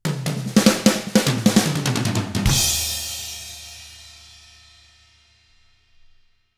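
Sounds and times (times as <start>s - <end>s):
shuffle drum beat: 0.0s - 4.3s.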